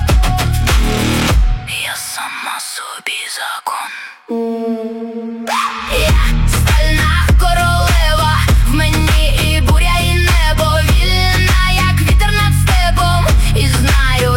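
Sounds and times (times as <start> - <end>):
Ukrainian rhythmic music: 0.0 - 1.8, 5.5 - 14.3.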